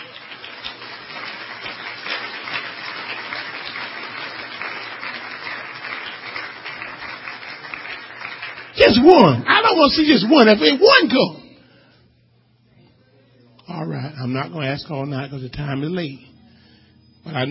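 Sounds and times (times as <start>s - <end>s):
audience clapping: 0.0s - 11.3s
speech: 8.9s - 11.4s, 14.3s - 16.3s, 17.2s - 17.4s.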